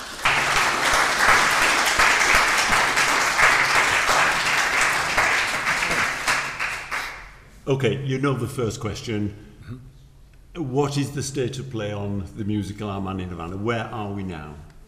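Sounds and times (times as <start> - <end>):
audience applause welcoming guests at a talk: 0.0 - 7.4
speech: 7.7 - 9.9, 10.6 - 14.7.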